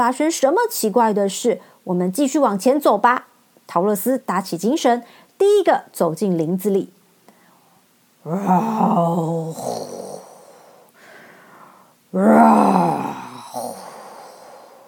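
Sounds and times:
speech: 0.0s - 7.0s, 8.2s - 10.0s, 12.1s - 13.7s
frightening strange beast roar: 8.3s - 10.4s, 12.2s - 14.6s.

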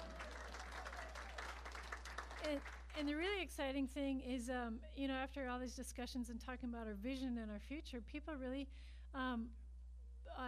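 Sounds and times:
people applauding: 0.0s - 2.9s
speech: 2.4s - 9.6s, 10.3s - 10.4s.

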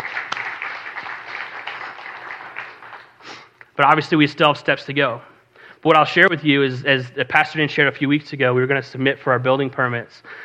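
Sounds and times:
audience clapping: 0.0s - 3.2s
speech: 3.8s - 10.4s.

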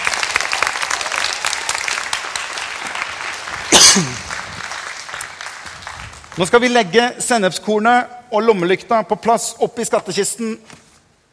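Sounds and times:
audience applause: 0.0s - 6.8s
speech: 4.0s - 4.2s, 6.4s - 10.8s.

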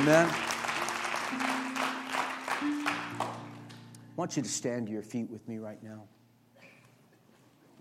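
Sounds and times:
speech: 0.0s - 0.5s, 4.2s - 6.2s
audience clapping in a steady rhythmic beat: 0.0s - 3.9s.

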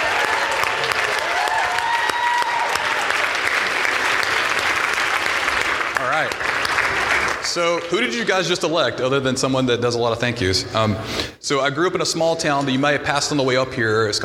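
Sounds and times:
faint cheers: 0.0s - 3.6s
audience applause from a large audience: 0.0s - 8.4s
speech: 7.6s - 14.2s.

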